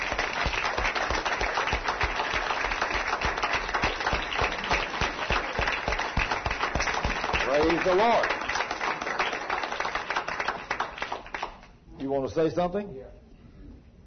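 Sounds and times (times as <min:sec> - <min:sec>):
audience applause: 0:00.0 - 0:11.7
speech: 0:07.6 - 0:08.4, 0:12.1 - 0:13.1.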